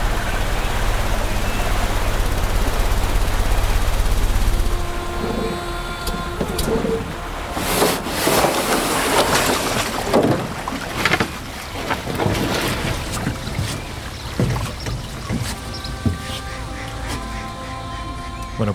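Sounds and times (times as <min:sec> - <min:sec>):
boat engine rumble: 0:00.0 - 0:18.7
boat wash splashing on the water: 0:00.0 - 0:18.7
knocks and thumps: 0:06.2 - 0:16.4.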